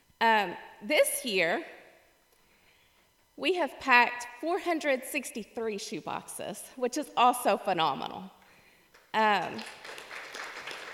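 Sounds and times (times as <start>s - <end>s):
speech: 0.2s - 1.8s, 3.4s - 8.4s, 9.2s - 10.0s
light audience clapping: 9.4s - 10.9s.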